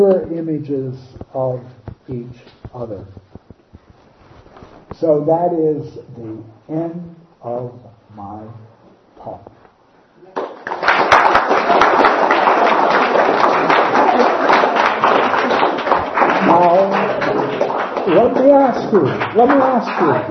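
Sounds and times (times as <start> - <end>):
speech: 0.0 - 3.3, 4.9 - 9.6, 16.4 - 17.1, 18.0 - 20.2
audience applause: 10.3 - 20.2.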